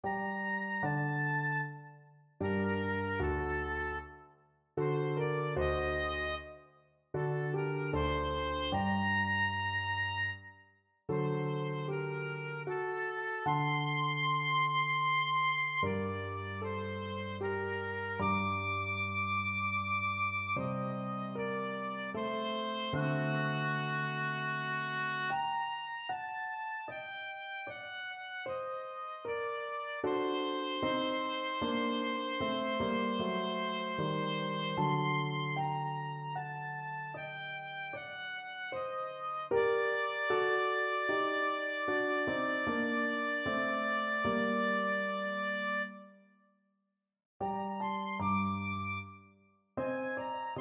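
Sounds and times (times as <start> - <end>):
oboe playing classical piece: 0.0 - 46.2, 47.4 - 50.5.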